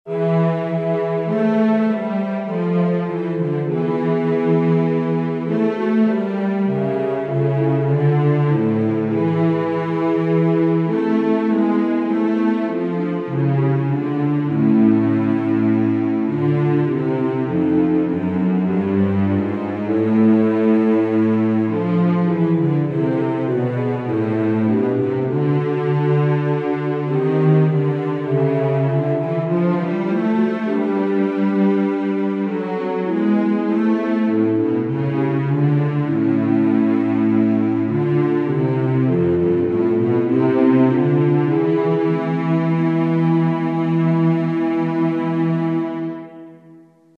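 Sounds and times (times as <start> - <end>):
instrumental music: 0.0 - 47.1.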